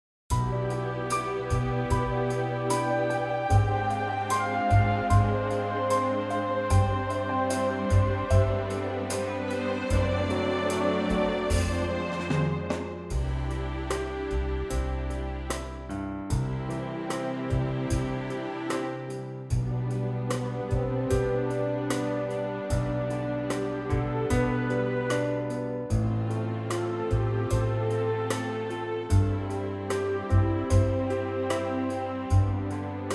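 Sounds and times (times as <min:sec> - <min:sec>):
orchestra C chord: 0:00.3 - 0:33.1.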